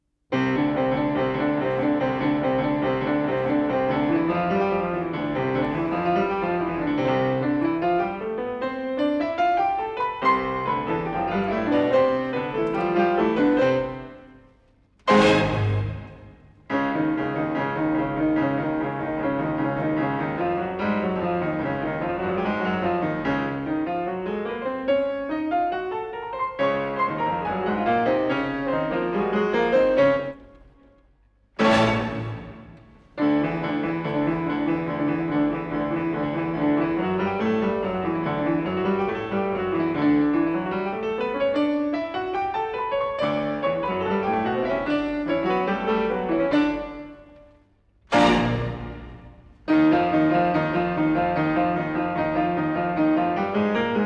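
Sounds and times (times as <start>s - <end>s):
pianists playing: 0.4s - 31.0s, 31.6s - 47.5s, 48.1s - 54.0s.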